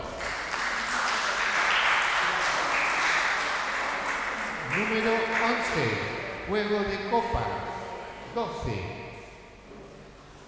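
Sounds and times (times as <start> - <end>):
crowd applauding: 0.0 - 6.5
speech: 4.8 - 7.7, 8.4 - 9.0.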